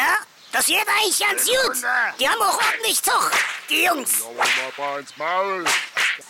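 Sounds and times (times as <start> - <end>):
speech: 0.6 - 5.9
whip-like cracks of carpet being beaten: 2.6 - 4.9, 5.6 - 6.2.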